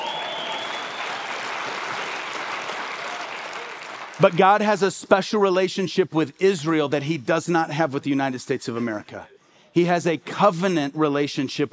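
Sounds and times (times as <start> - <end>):
audience applause: 0.0 - 4.4
speech: 4.2 - 11.7.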